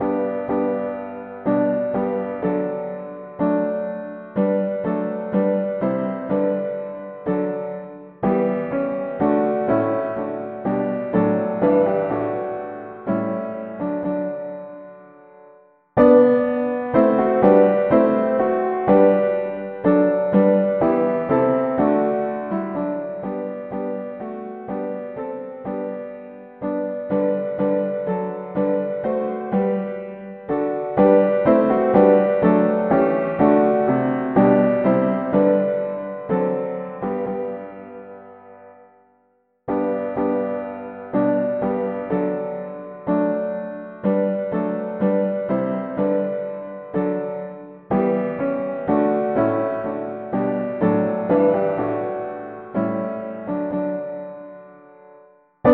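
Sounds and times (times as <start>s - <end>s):
mono piano: 0.0s - 55.7s.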